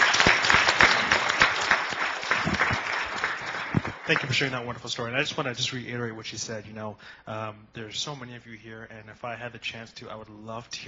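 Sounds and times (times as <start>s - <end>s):
round of applause: 0.0s - 4.8s
speech: 4.1s - 10.8s.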